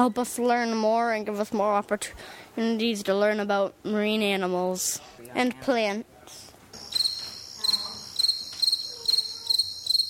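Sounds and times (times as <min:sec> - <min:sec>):
speech: 0:00.0 - 0:06.4
meadow katydid chirping: 0:06.8 - 0:10.0.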